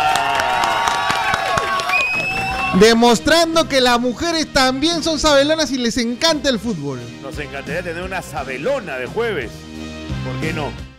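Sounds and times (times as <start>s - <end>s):
cheering voices whooping: 0.0s - 3.0s
studio applause welcoming a female guest on a football talk show: 0.0s - 3.7s
speech: 2.7s - 10.9s.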